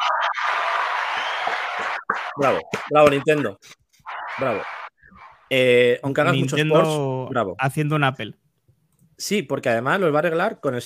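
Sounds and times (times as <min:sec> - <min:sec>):
applause: 0:00.3 - 0:02.9
speech: 0:02.4 - 0:03.8, 0:04.4 - 0:04.8, 0:05.5 - 0:08.4, 0:09.2 - 0:10.8.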